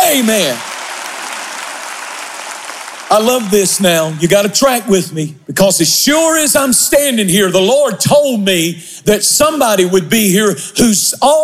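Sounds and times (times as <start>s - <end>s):
audience clapping hands: 0.0s - 5.2s
speech: 0.1s - 0.7s, 3.1s - 11.4s.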